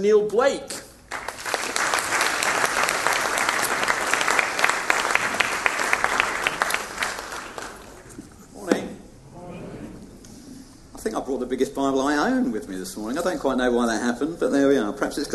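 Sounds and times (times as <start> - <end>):
speech: 0.0 - 0.8, 11.4 - 15.3
congregation applauding to welcome a guest preacher at a morning church service: 1.0 - 8.3.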